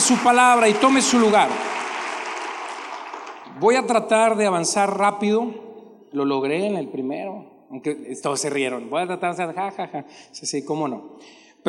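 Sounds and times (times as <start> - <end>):
audience applause: 0.0 - 3.6
speech: 0.1 - 1.8, 3.6 - 11.6.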